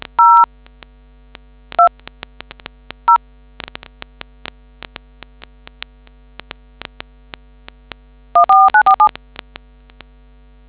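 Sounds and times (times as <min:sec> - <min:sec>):
DTMF tones: 0:08.4 - 0:09.1.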